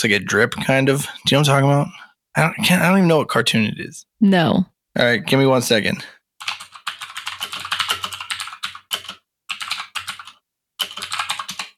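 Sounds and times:
speech: 0.0s - 6.5s
rapid typing on a computer keyboard: 6.4s - 11.7s.

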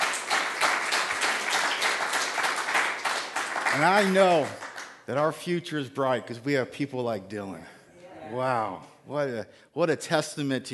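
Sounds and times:
church audience applause: 0.0s - 5.0s
speech: 3.7s - 10.7s.

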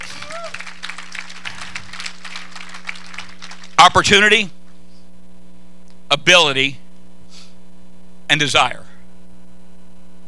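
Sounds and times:
audience hand clapping: 0.0s - 4.8s
speech: 3.8s - 4.6s, 6.2s - 6.8s, 8.3s - 8.9s.

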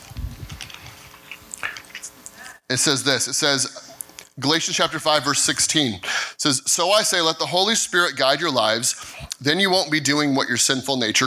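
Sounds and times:
paper Bible pages turning: 0.0s - 2.4s
speech: 2.7s - 11.2s.

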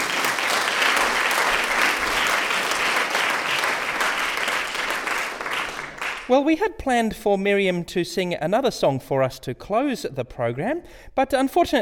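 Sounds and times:
audience applause: 0.0s - 6.3s
speech: 6.3s - 11.8s.

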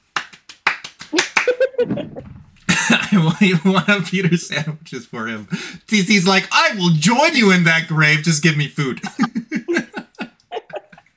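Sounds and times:
sharp hand claps: 0.0s - 1.8s
speech: 3.1s - 9.4s
voice laughing or murmuring: 9.0s - 11.1s.

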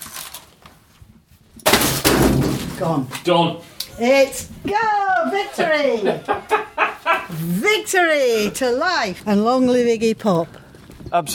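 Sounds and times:
laptop thrown into a bin: 1.6s - 3.0s
speech: 2.8s - 6.7s, 7.3s - 11.3s
laughter: 4.8s - 7.6s.

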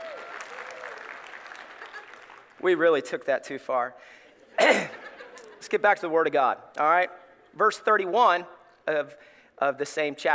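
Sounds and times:
audience applause: 0.0s - 2.6s
laughter: 1.6s - 2.4s, 4.3s - 5.9s
speech: 2.6s - 5.0s, 5.7s - 10.3s.

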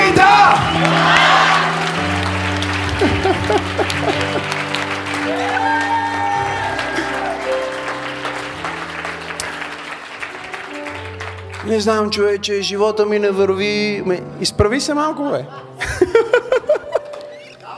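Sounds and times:
audience applauding: 0.0s - 12.3s
laughter: 2.8s - 5.0s, 15.5s - 17.4s
speech: 11.7s - 16.3s.

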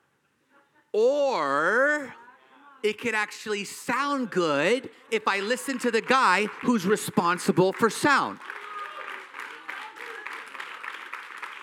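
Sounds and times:
speech: 0.9s - 2.2s, 2.8s - 8.6s
audience clapping: 5.1s - 11.6s.

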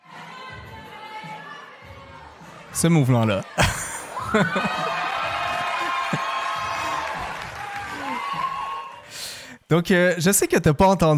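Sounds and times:
laughter: 2.4s - 9.1s
crowd applauding and cheering in video: 2.4s - 9.3s
speech: 2.8s - 5.0s, 9.7s - 11.1s.

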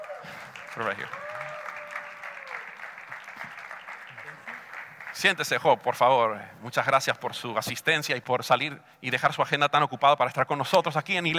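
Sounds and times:
audience applause: 0.0s - 5.7s
speech: 0.8s - 1.3s, 5.2s - 11.3s.

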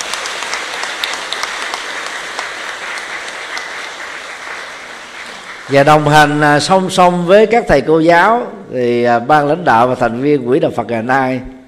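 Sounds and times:
audience applause: 0.0s - 6.4s
speech: 5.7s - 11.5s.

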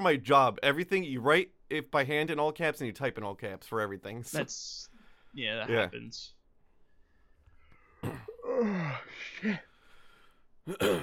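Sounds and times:
speech: 0.0s - 6.4s, 8.0s - 9.7s, 10.6s - 11.0s
person yawning: 8.0s - 9.7s.

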